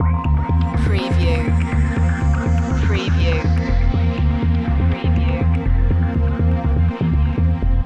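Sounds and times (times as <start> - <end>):
tough trek music loop: 0.0 - 7.8.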